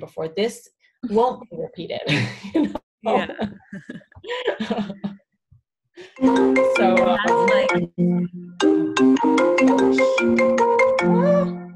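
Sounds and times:
speech: 0:00.0 - 0:05.1, 0:06.0 - 0:11.6
laughter: 0:02.1 - 0:05.2
phone ringtone playing a melodic electronic tune: 0:06.2 - 0:11.5.

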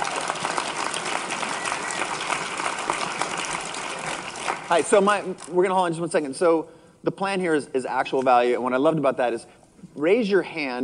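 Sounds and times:
audience applause: 0:00.0 - 0:05.0
speech: 0:04.7 - 0:10.8.

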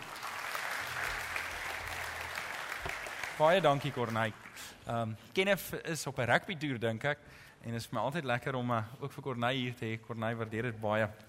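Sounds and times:
audience clapping: 0:00.0 - 0:04.8
speech: 0:03.4 - 0:11.2.

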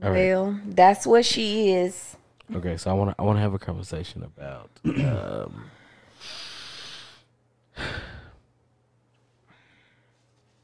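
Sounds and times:
speech: 0:00.0 - 0:06.4
nervous person taking a deep breath: 0:05.7 - 0:08.5, 0:09.4 - 0:10.3.

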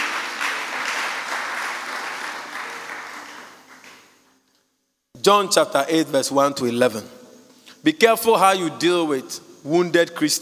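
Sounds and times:
audience clapping: 0:00.0 - 0:04.3
speech: 0:05.2 - 0:07.2, 0:07.8 - 0:10.4.

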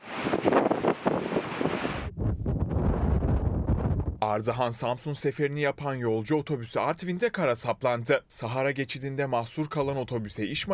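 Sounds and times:
heavy storm waves crashing on flooded coast: 0:00.0 - 0:04.2
loud roaring wind buffeting the microphone on flooded coast: 0:00.0 - 0:04.2
speech: 0:04.2 - 0:10.7.

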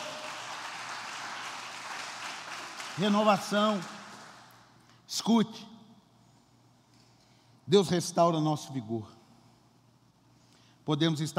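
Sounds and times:
audience applause: 0:00.0 - 0:04.6
speech: 0:03.0 - 0:04.0, 0:05.1 - 0:05.7, 0:07.7 - 0:09.2, 0:10.9 - 0:11.3.

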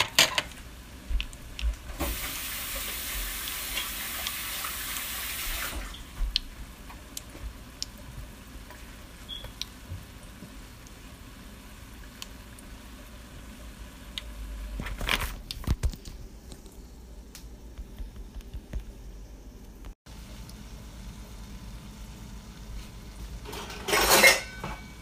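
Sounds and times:
dishes and utensils clinking: 0:00.0 - 0:00.5, 0:23.4 - 0:25.0
frying sizzle of Oreos and funnel sticks: 0:00.0 - 0:16.9, 0:20.1 - 0:25.0.

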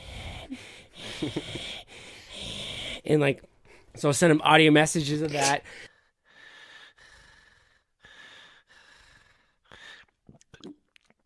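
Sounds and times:
man imitating another man's heavy breathing: 0:00.0 - 0:03.1
speech: 0:01.2 - 0:01.8, 0:03.0 - 0:05.9.

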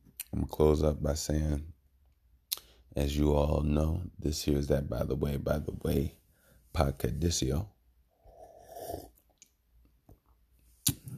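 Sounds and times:
speech: 0:00.5 - 0:01.7, 0:02.9 - 0:07.8, 0:08.9 - 0:09.1
airy slurp of hot mint tea: 0:08.2 - 0:09.3.

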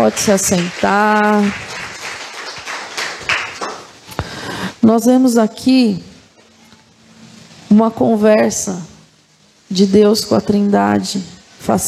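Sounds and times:
speech: 0:00.0 - 0:01.7, 0:04.8 - 0:06.1, 0:07.7 - 0:08.9, 0:09.7 - 0:11.8
audience clapping: 0:00.0 - 0:04.4.

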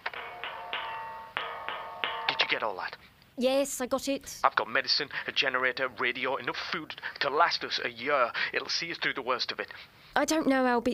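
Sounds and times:
coded knock on a metal hatch: 0:00.0 - 0:02.7
speech: 0:02.5 - 0:10.9.

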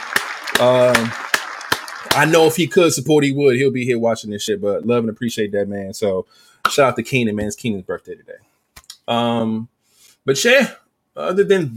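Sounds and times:
applause: 0:00.0 - 0:02.8
speech: 0:00.6 - 0:01.2, 0:02.1 - 0:08.5, 0:09.1 - 0:11.7.

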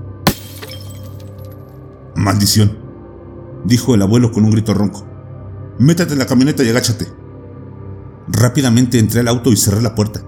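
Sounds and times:
glass fragments tinkling: 0:00.3 - 0:01.6
rearview mirror shattering into pieces: 0:00.3 - 0:01.6
speech: 0:02.2 - 0:02.8, 0:03.6 - 0:05.1, 0:05.8 - 0:07.2, 0:08.3 - 0:10.2.

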